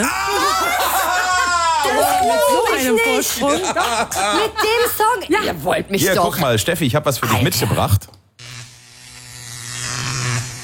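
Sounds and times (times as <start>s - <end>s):
laughter: 0.0s - 5.3s
speech: 2.3s - 8.2s
electric shaver buzzing: 7.7s - 10.6s.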